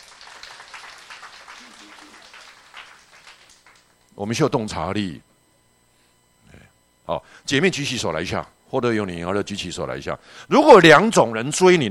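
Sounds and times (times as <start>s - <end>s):
crowd applauding: 0.0s - 4.0s
speech: 4.2s - 5.3s, 7.1s - 11.8s.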